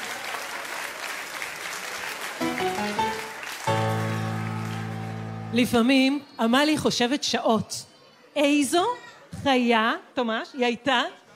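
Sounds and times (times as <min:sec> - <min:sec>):
audience applause: 0:00.0 - 0:05.8
short musical notes and sustained chord: 0:02.4 - 0:06.2
speech: 0:05.5 - 0:11.2.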